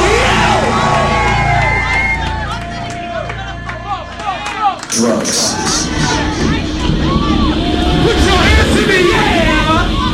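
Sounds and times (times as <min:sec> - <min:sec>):
crowd cheering at a DJ event: 0:00.0 - 0:10.1
speech: 0:05.0 - 0:05.6.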